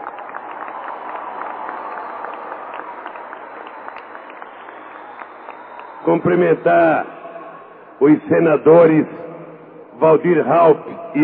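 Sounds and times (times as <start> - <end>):
audience applause: 0.0 - 6.3
speech: 6.0 - 7.1, 8.0 - 9.2, 10.0 - 11.2.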